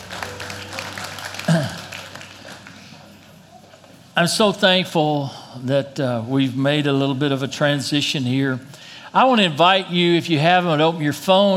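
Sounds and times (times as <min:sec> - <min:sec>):
crowd applause: 0:00.0 - 0:03.5
speech: 0:04.2 - 0:11.5.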